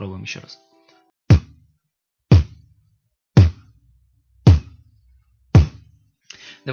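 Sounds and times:
beatboxed kick drums with unvoiced lip bursts: 0:01.3 - 0:01.6, 0:02.3 - 0:02.7, 0:03.4 - 0:03.8, 0:04.4 - 0:04.8, 0:05.5 - 0:06.0.

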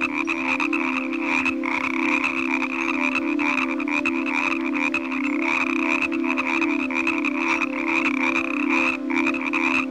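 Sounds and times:
frog croaking: 0:00.0 - 0:09.8.

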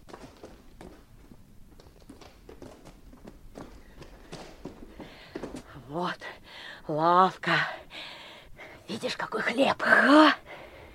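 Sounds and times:
children running footsteps: 0:00.0 - 0:05.8
speech: 0:05.9 - 0:07.8, 0:08.9 - 0:10.4.

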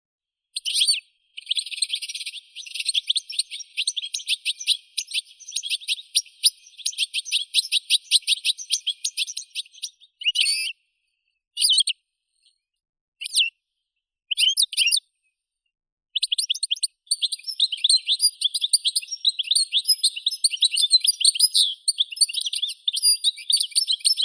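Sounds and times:
European goldfinch Carduelis carduelis singing: 0:00.6 - 0:10.9, 0:11.6 - 0:12.5, 0:14.3 - 0:15.0, 0:16.2 - 0:24.2.

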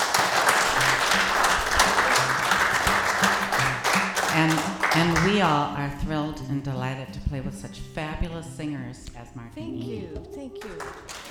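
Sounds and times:
audience applause: 0:00.0 - 0:05.6, 0:10.5 - 0:11.2
speech: 0:04.4 - 0:11.2.

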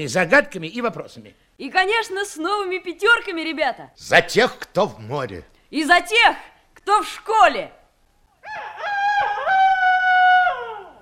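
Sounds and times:
speech: 0:00.0 - 0:07.8
rooster crowing: 0:08.4 - 0:10.9.

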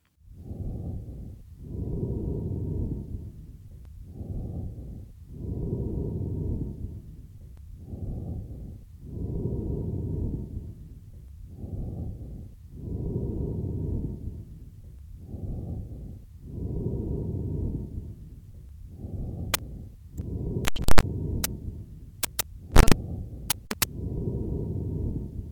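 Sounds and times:
amphoric breathing from a patient with a large left lung abscess: 0:00.2 - 0:25.4
sharp clicks: 0:20.2 - 0:21.5, 0:22.2 - 0:23.9.

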